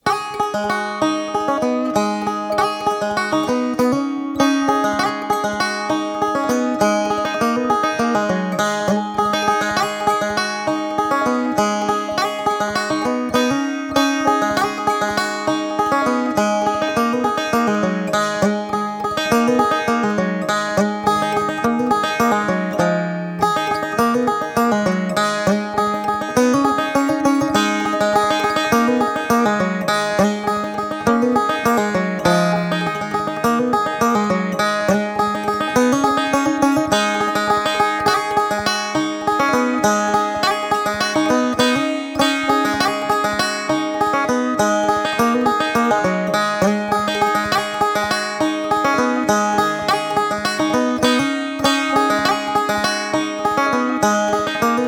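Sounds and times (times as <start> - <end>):
Appalachian country music: 0.1 - 54.8.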